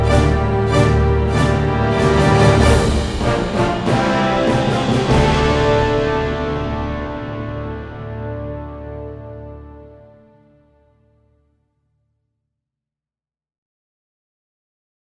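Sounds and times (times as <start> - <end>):
brass instruments: 0.0 - 11.2.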